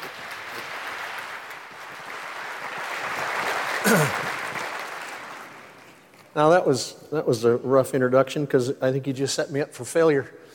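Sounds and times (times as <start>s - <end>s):
audience applauding to welcome Pastor Buddy: 0.0s - 6.1s
speech: 3.8s - 4.2s, 6.4s - 10.5s.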